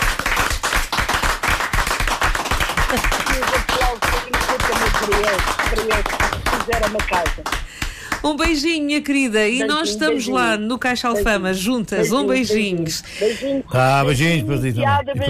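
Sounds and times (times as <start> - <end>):
audience applause: 0.0 - 8.2
speech: 5.1 - 7.6, 8.2 - 15.2.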